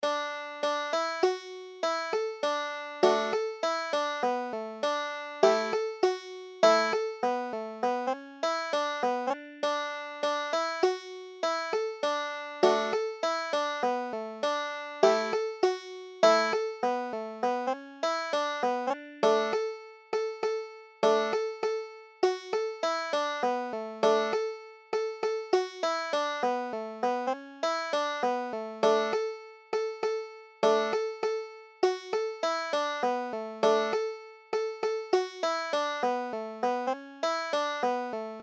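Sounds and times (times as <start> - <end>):
banjo: 0.0 - 38.4.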